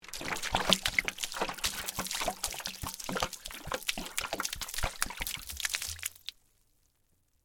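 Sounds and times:
wiper fluid pouring out of a bottle, long and heavy: 0.0s - 6.4s.

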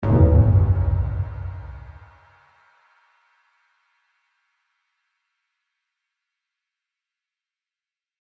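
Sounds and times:
deep phased hit: 0.0s - 2.1s.

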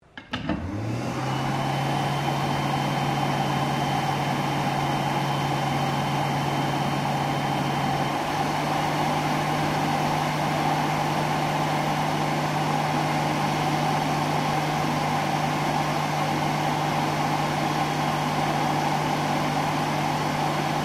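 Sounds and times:
hand blow dryer operating in a public bathroom: 0.3s - 20.8s.

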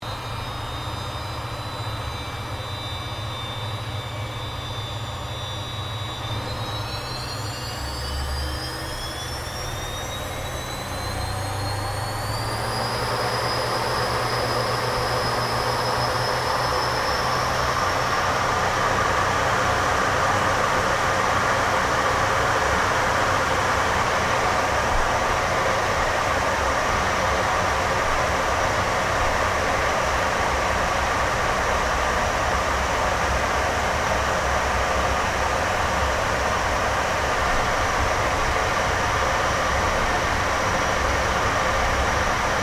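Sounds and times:
CA-27 Sabre jet aircraft taking off heard from interior: 0.0s - 42.6s.

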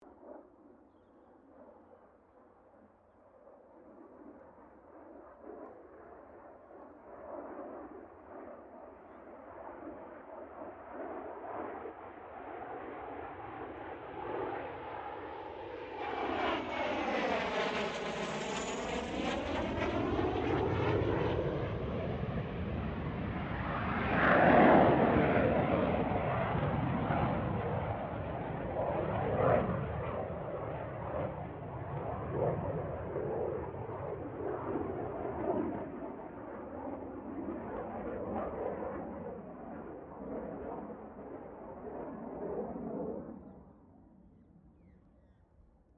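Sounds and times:
CA-27 Sabre jet aircraft passing: 7.0s - 43.6s.

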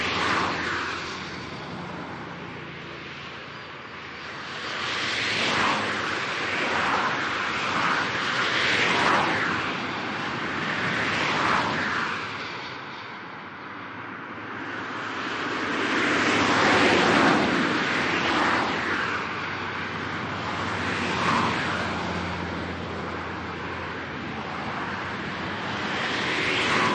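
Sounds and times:
fast moving highway traffic with cars driving by at high speed: 0.0s - 26.9s.

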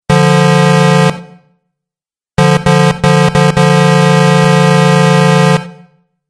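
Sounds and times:
truck horn: 0.1s - 1.5s, 2.4s - 6.0s.

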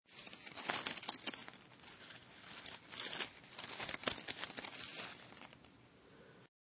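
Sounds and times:
small batch of leaves crunched and crackled: 0.1s - 5.7s.

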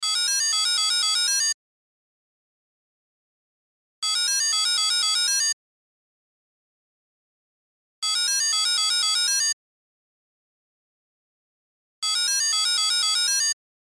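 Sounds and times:
cell phone ringtone: 0.0s - 1.6s, 4.0s - 5.6s, 8.0s - 9.6s, 12.0s - 13.6s.

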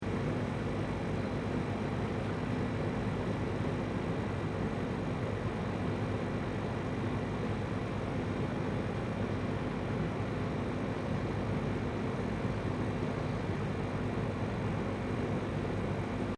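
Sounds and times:
external air conditioning compressor operating: 0.0s - 16.3s.

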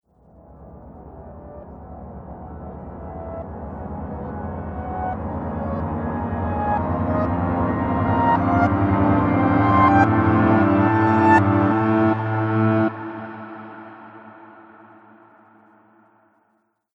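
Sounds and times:
short horror piano drone: 0.1s - 16.1s.

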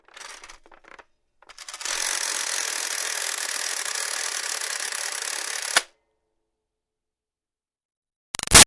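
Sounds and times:
toy toaster countdown timer ticking: 1.5s - 5.8s.

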